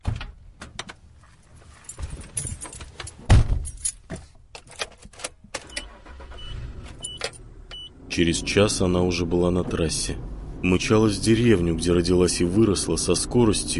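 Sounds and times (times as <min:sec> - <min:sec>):
clothing rustling: 0:01.0 - 0:04.4
keys jingling: 0:01.2 - 0:05.4
speech: 0:08.2 - 0:13.7.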